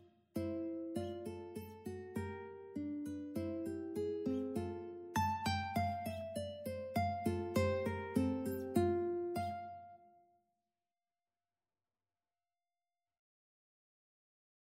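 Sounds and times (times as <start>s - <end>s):
ukulele duet arioso: 0.4s - 9.9s.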